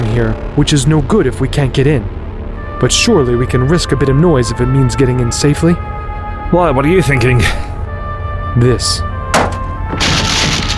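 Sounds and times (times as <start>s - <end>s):
speech: 0.2s - 2.2s, 2.8s - 5.9s, 6.5s - 7.7s, 8.5s - 9.1s
debris rattling: 9.2s - 10.7s
wood splintering: 9.3s - 10.7s
wooden door smashed in with a shield: 9.3s - 10.7s.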